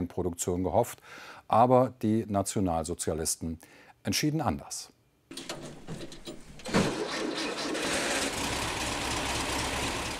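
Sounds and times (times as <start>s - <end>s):
speech: 0.0s - 6.0s
engine of a 1930s prototype car built by Eugen Friedrich Meyer: 5.4s - 10.1s.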